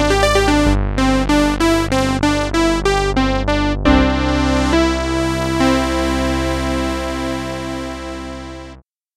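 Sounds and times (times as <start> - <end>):
synth brass: 0.0 - 8.8.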